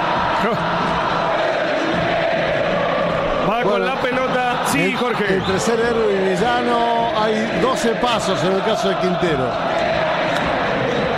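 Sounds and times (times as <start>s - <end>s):
stadium crowd shouting: 0.0s - 11.1s
speech: 0.4s - 0.9s, 3.6s - 9.9s.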